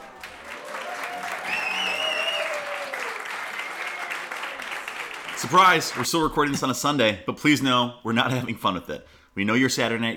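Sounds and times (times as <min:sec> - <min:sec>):
audience whistles: 0:00.0 - 0:04.7
live studio audience applause: 0:00.0 - 0:06.2
speech: 0:05.4 - 0:10.1.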